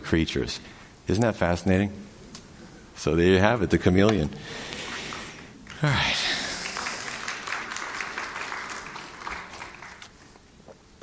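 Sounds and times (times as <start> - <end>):
speech: 0.1 - 2.1, 3.0 - 4.8, 5.8 - 6.3
crowd clapping: 5.6 - 10.4.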